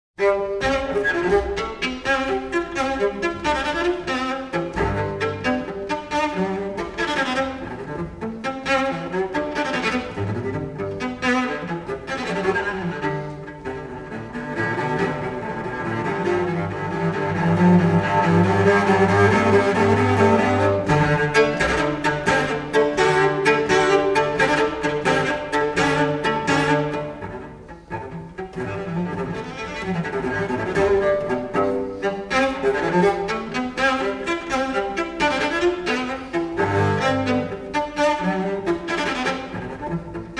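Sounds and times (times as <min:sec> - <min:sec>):
solo cello gigue in C major: 0:00.2 - 0:40.3.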